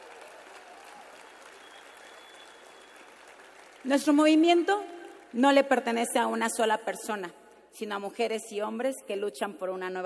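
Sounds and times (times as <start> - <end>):
loud audience applause: 0.0 - 4.2
speech: 3.8 - 10.0.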